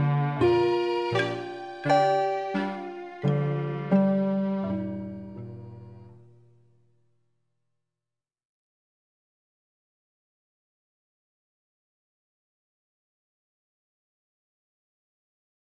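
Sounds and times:
seven equal temperament romp: 0.0s - 6.2s.

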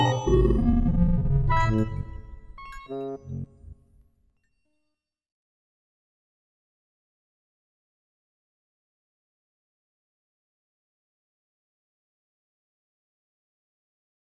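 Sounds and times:
harmonics and sub harmonics in a Fibonacci tonescape: 0.0s - 3.8s.

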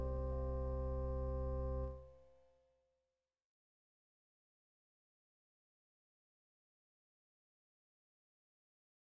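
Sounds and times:
fractal major and minor scales: 0.0s - 2.0s.

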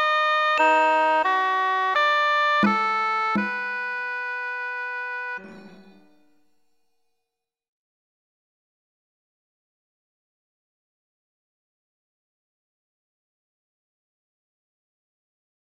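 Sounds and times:
fractal music: 0.5s - 6.6s.

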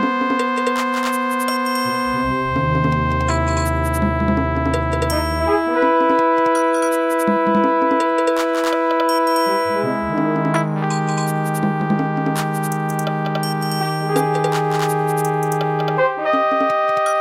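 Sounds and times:
brass in fifteen-tone equal temperament: 0.0s - 17.1s
percussion medley: 0.0s - 17.1s.

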